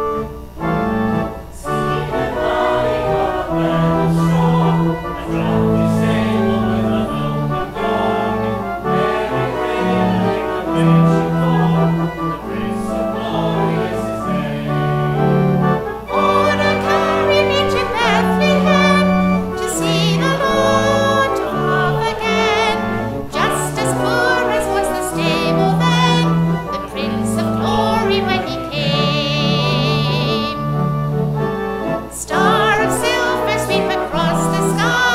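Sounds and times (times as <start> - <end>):
calypso Christmas carol: 0.0 - 35.1.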